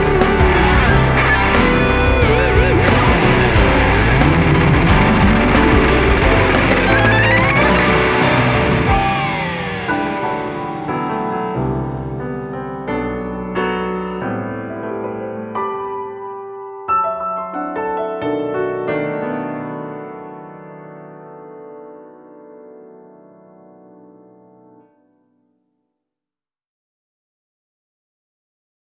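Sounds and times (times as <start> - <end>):
instrumental music: 0.0 - 22.6.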